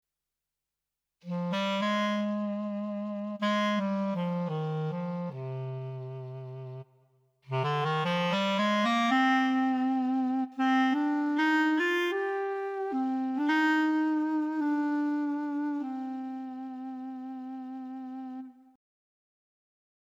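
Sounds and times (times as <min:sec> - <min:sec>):
clarinet: 0:01.2 - 0:18.8.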